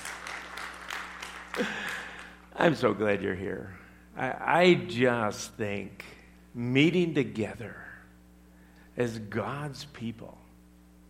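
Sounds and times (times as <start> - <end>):
audience applause: 0.0 - 2.5
speech: 1.6 - 2.0, 2.6 - 7.9, 9.0 - 10.4.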